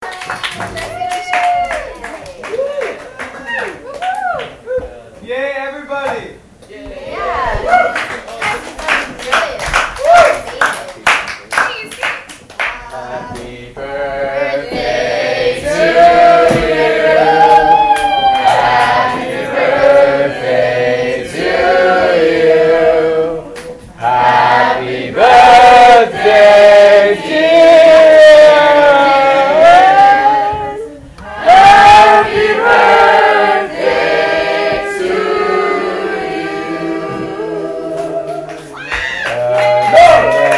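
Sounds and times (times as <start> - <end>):
applause: 0.0 - 4.6, 7.9 - 12.8, 38.4 - 40.5
people singing: 12.8 - 38.8.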